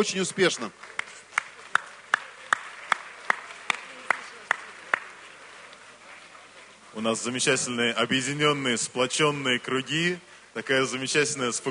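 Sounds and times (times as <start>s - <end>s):
speech: 0.0s - 1.0s, 7.0s - 11.6s
audience rhythmic clapping in unison: 0.5s - 5.2s.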